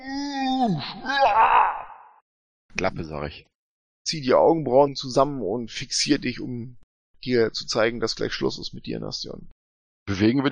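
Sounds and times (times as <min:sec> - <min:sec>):
voice imitating an orc screaming in pain: 0:00.0 - 0:02.2
speech: 0:00.6 - 0:01.7, 0:02.8 - 0:10.5.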